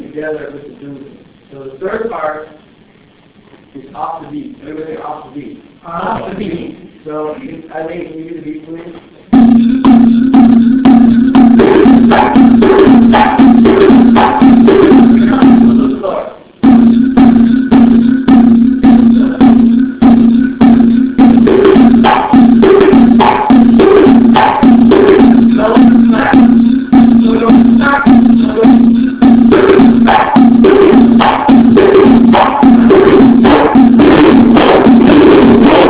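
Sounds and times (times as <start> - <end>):
musical accompaniment: 9.3 - 35.8.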